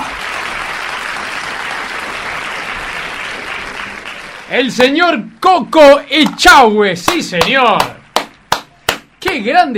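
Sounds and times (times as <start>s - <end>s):
applause: 0.0s - 4.8s
speech: 4.5s - 8.0s, 9.4s - 9.7s.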